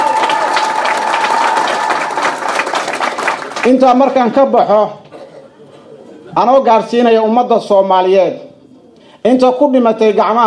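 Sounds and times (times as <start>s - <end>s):
audience applause: 0.0s - 4.3s
speech: 3.6s - 5.0s, 6.3s - 8.4s, 9.2s - 10.4s.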